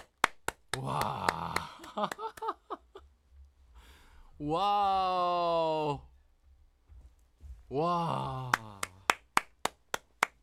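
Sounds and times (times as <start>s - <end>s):
applause: 0.0s - 2.5s, 8.5s - 10.4s
speech: 0.8s - 2.4s, 4.4s - 6.1s, 7.7s - 8.6s
laughter: 0.8s - 3.0s.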